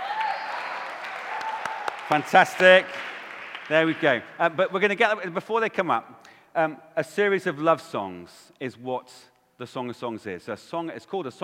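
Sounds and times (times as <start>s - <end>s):
audience applause: 0.0s - 4.6s
sharper individual claps: 0.8s - 4.5s
speech: 2.1s - 11.4s.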